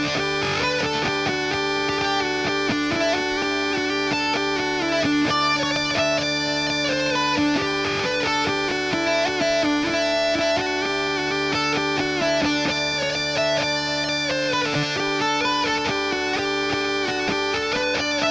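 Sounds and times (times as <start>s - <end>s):
heavily distorted Revelation Jaguar electric mandolin: 0.0s - 18.2s.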